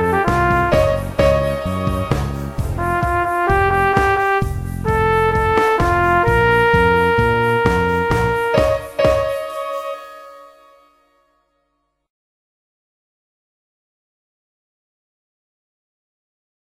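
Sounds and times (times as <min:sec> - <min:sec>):
music beat: 0:00.0 - 0:10.5.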